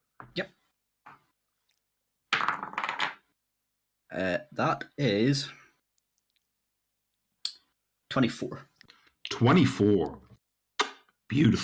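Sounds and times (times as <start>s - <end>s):
speech: 0.4s - 0.6s, 4.1s - 5.6s, 8.2s - 8.7s, 9.3s - 10.2s, 11.3s - 11.6s
dice rolled for an attack roll in a tabletop game: 2.4s - 3.2s.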